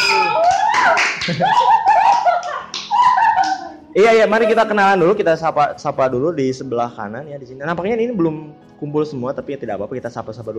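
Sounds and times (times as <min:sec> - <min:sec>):
applause, hands clapping: 0:00.0 - 0:03.8
laughter: 0:00.0 - 0:05.3
speech: 0:01.3 - 0:01.8, 0:04.0 - 0:10.5.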